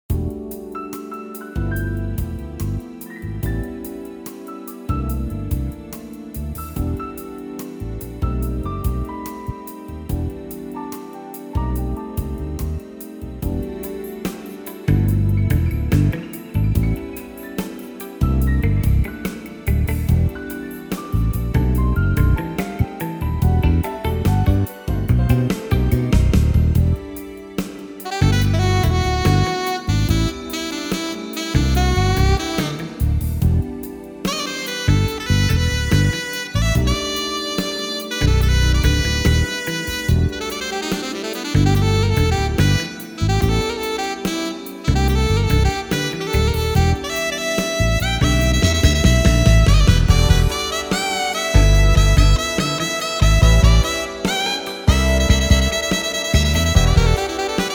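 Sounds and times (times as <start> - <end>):
smooth jazz: 0.0 - 57.7.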